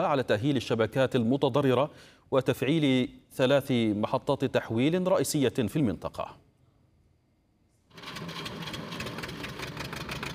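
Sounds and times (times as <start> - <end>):
speech: 0.0 - 6.4
diesel generator powering a grain-sieving workshop in Syria: 7.9 - 10.3.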